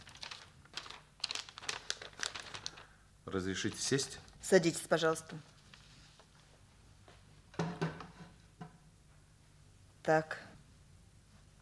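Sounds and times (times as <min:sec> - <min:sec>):
paper packet from division headquarters being handled and torn open: 0:00.0 - 0:02.9
speech: 0:03.3 - 0:05.5, 0:10.1 - 0:10.5.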